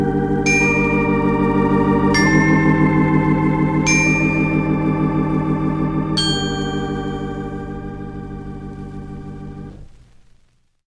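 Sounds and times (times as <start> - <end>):
organ playing a carol: 0.0 - 9.9
chimes playing a carol: 0.4 - 8.1.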